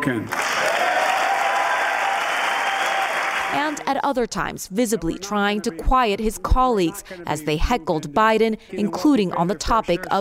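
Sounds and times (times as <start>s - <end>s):
speech: 0.0s - 0.4s, 3.5s - 10.1s
large crowd applauding: 0.1s - 3.8s.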